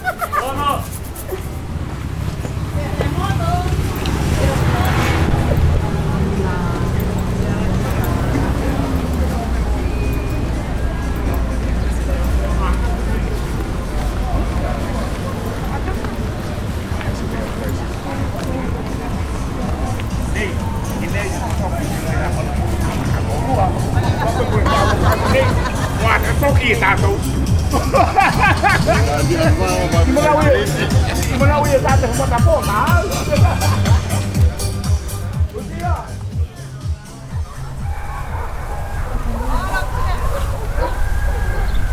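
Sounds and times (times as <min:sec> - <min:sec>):
laughter: 0:00.0 - 0:02.2, 0:03.6 - 0:35.3, 0:36.6 - 0:41.9
constant pickup truck traffic on town streets: 0:00.0 - 0:41.9
indistinct murmuring voices: 0:00.0 - 0:41.9
scattered street noises: 0:00.0 - 0:41.9.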